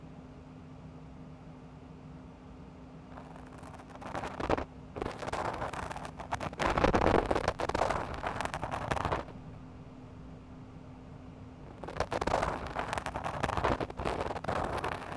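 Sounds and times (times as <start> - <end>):
rubber spiral and spatula ear pick cleaning left ear: 3.2 - 15.1.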